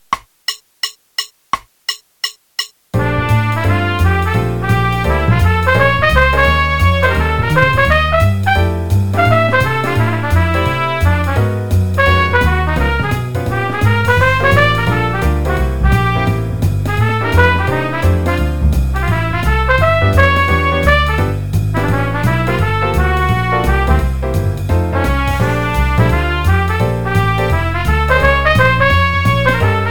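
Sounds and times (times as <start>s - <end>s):
jazz trumpet audition: 3.0s - 29.9s.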